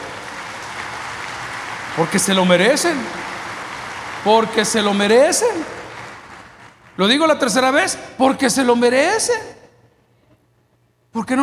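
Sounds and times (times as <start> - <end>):
audience applauding: 0.0 - 7.8
speech: 2.0 - 3.2, 4.2 - 5.8, 7.0 - 9.6, 11.2 - 11.4.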